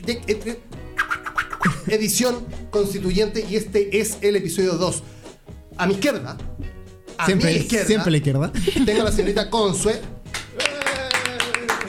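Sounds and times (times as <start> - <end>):
speech: 0.0 - 0.8, 1.8 - 5.1, 5.8 - 6.5, 7.2 - 10.2
laughter: 8.5 - 9.4, 10.6 - 11.8
hand clapping: 10.2 - 11.8.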